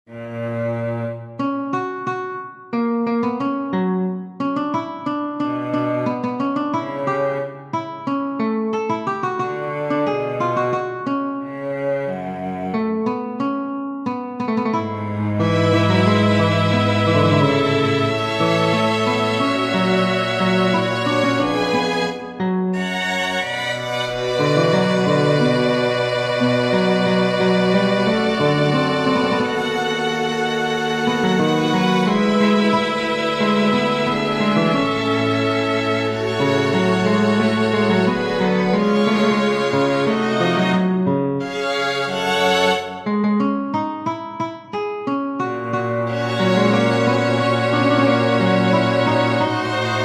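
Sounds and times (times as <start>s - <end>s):
recitative on guitar strings: 0.1s - 50.0s.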